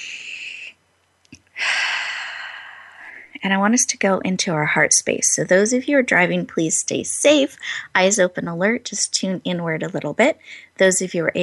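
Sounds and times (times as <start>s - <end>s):
person inhaling deeply during a guided breathing exercise: 0.0s - 0.8s, 1.5s - 3.3s
speech: 3.4s - 11.4s.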